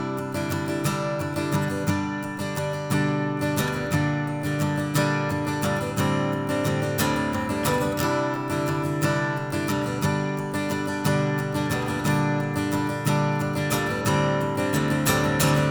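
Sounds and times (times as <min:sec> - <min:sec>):
stroke on the neck of an acoustic guitar: 0:00.0 - 0:15.7.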